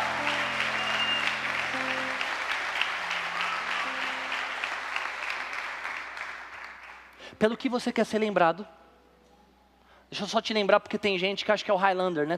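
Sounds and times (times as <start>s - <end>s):
audience applause: 0.0s - 7.2s
speech: 7.4s - 8.8s, 10.1s - 12.3s.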